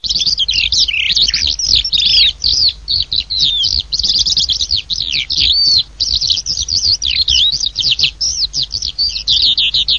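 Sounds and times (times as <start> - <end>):
Eurasian skylark song: 0.0 - 9.9.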